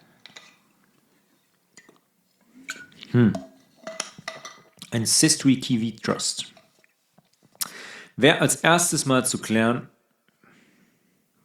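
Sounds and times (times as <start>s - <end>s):
dishes and glass clinking: 0.2s - 0.6s, 2.6s - 4.8s
faint gulping: 2.5s - 3.5s
speech: 3.1s - 3.5s, 4.9s - 6.6s, 8.2s - 10.0s.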